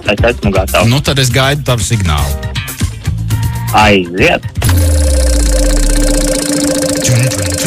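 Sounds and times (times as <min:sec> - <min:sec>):
speech: 0:00.1 - 0:02.5, 0:03.7 - 0:04.8
big prize wheel spinning: 0:04.7 - 0:07.6.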